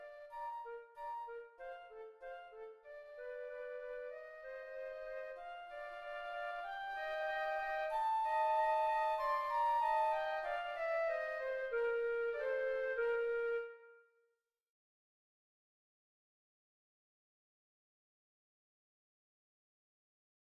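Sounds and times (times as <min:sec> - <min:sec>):
piano: 0:00.0 - 0:13.6.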